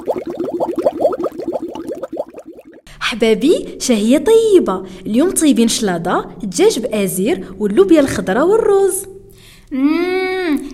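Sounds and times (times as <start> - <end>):
water poured into a glass at the dinner table: 0.0 - 2.8
speech: 3.1 - 9.1, 9.7 - 10.1.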